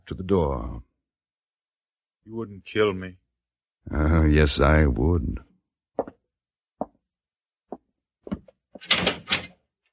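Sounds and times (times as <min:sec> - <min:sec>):
speech: 0:00.1 - 0:00.9, 0:02.2 - 0:03.2, 0:03.8 - 0:06.1
cell door being closed: 0:08.8 - 0:09.5.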